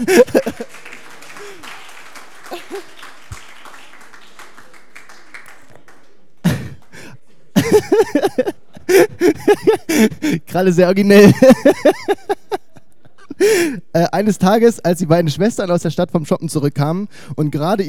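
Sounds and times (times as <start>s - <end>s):
speech: 0.0s - 0.4s, 10.6s - 11.8s, 14.0s - 17.8s
laughter: 0.0s - 3.7s, 6.5s - 10.5s, 11.1s - 13.8s
applause: 0.0s - 7.7s.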